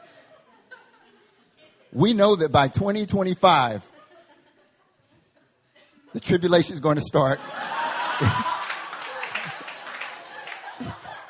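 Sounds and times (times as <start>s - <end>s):
laughter: 0.0s - 2.4s, 3.8s - 11.2s
speech: 1.9s - 3.9s, 6.1s - 7.6s, 8.2s - 8.5s
audience clapping: 7.8s - 11.2s.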